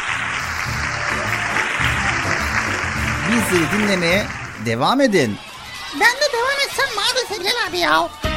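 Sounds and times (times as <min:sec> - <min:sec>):
applause: 0:00.0 - 0:06.5
speech: 0:03.3 - 0:08.2.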